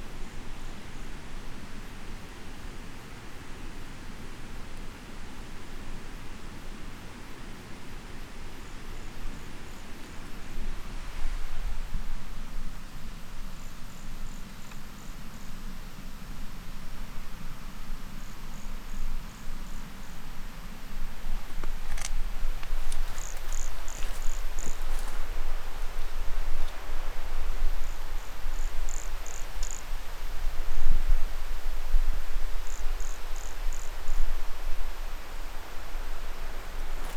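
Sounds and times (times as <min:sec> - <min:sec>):
background hiss: 0:00.0 - 0:37.1
toadlet calling: 0:21.5 - 0:25.2.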